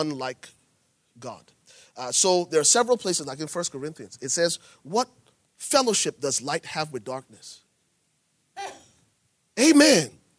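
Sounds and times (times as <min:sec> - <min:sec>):
speech: 0:00.0 - 0:00.6, 0:01.2 - 0:07.6, 0:09.6 - 0:10.2
sneeze: 0:08.6 - 0:09.0.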